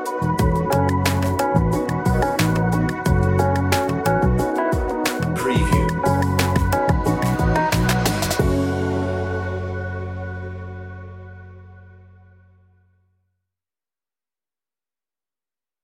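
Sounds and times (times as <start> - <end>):
delicate dreamlike underscore music: 0.0 - 12.5.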